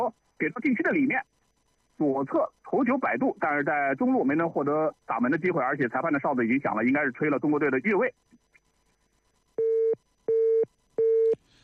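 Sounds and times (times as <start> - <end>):
speech: 0.0 - 1.4, 2.0 - 8.4
telephone busy tone on failed call: 9.6 - 11.4.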